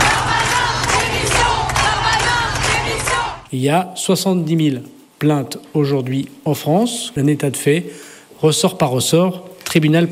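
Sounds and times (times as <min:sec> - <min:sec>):
crowd shouting demands for resignation: 0:00.0 - 0:03.5
speech: 0:03.5 - 0:10.0.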